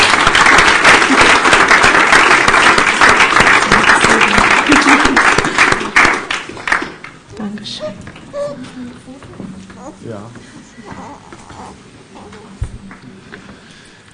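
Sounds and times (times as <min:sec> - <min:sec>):
audience applause: 0:00.0 - 0:07.2
speech: 0:10.0 - 0:10.9.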